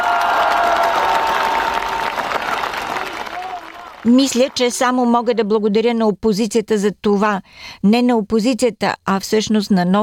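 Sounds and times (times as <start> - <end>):
crowd applauding: 0.0 - 5.3
speech: 4.0 - 10.0.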